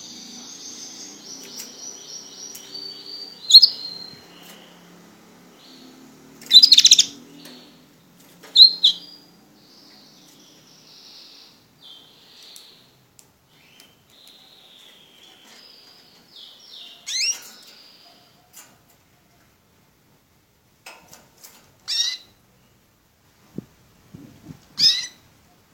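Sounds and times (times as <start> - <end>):
Border canary singing: 0.0 - 18.7, 21.8 - 22.4, 24.8 - 25.3.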